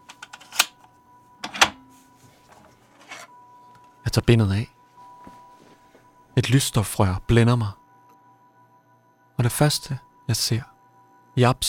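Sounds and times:
bank safe deposit box being unlocked and pulled open: 0.0 - 3.4
faint hum: 0.0 - 11.6
speech: 4.2 - 4.7, 6.4 - 7.8, 9.4 - 10.7, 11.4 - 11.6.

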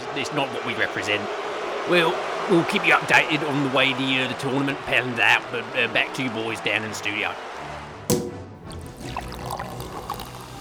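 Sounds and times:
speech: 0.2 - 7.5
drink pouring into a glass: 8.1 - 10.5
glass clink: 8.1 - 10.5.

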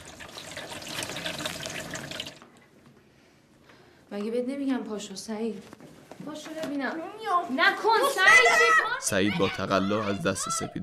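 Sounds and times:
water running from a bathroom tap: 0.0 - 2.4
speech: 4.1 - 10.8.

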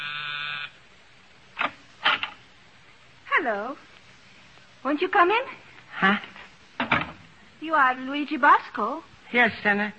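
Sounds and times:
doorbell buzzing: 0.0 - 0.8
speech: 3.4 - 3.9, 4.8 - 6.3, 7.6 - 9.9.

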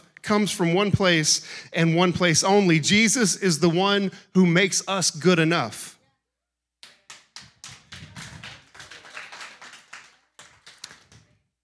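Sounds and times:
speech: 0.3 - 6.0
rhythmic hand clapping: 6.8 - 11.4.

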